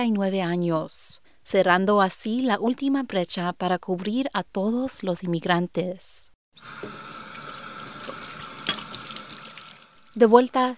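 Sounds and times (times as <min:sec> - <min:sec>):
speech: 0:00.0 - 0:07.1, 0:10.2 - 0:10.7
tap water running as a woman washes her hands in a family home: 0:06.6 - 0:10.7.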